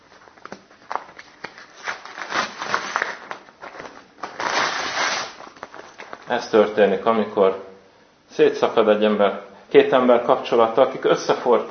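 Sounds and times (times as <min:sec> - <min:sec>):
two glued sheets of paper being pulled and torn apart: 0:01.0 - 0:05.7
speech: 0:06.3 - 0:07.7, 0:08.4 - 0:11.6.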